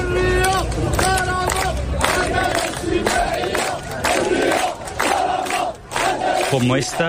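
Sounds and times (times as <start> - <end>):
protest crowd chanting for freedom: 0.0 - 7.0.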